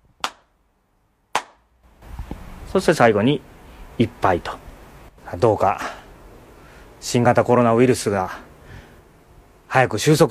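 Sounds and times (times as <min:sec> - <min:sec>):
ritual hand claps during a Shinto shrine prayer: 0:00.2 - 0:00.5, 0:01.3 - 0:01.6
speech: 0:02.7 - 0:04.6, 0:05.3 - 0:05.9, 0:07.0 - 0:08.4, 0:09.7 - 0:10.2.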